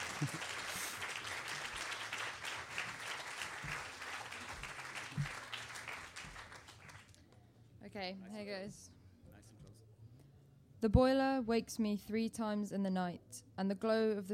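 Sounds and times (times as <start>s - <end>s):
audience round of applause: 0.0s - 7.2s
speech: 0.2s - 0.5s, 8.0s - 8.9s, 10.8s - 14.3s.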